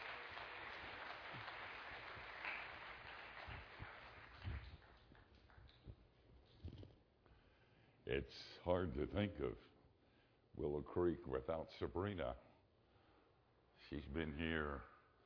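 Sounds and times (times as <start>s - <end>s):
audience applause: 0.0s - 5.7s
speech: 8.1s - 9.7s, 10.6s - 12.4s, 13.9s - 14.9s.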